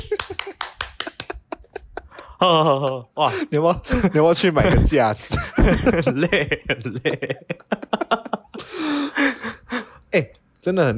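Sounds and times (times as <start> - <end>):
hand clapping: 0.0 - 1.8
laughter: 0.0 - 9.5
speech: 2.4 - 9.3, 10.1 - 10.9.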